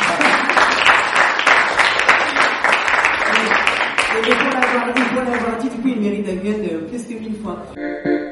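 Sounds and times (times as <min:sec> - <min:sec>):
applause: 0:00.0 - 0:05.6
speech: 0:05.8 - 0:08.2.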